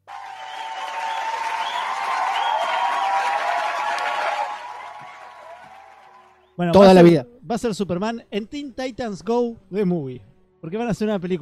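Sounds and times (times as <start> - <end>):
applause sound effect: 0.0 - 6.4
crowd noise: 0.0 - 6.9
speech: 6.6 - 11.4.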